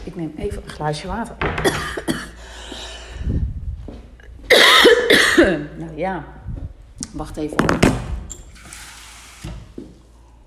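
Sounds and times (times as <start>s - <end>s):
speech: 0.0s - 2.3s, 5.4s - 6.4s, 7.1s - 8.1s
person coughing: 1.6s - 2.4s, 4.5s - 5.7s.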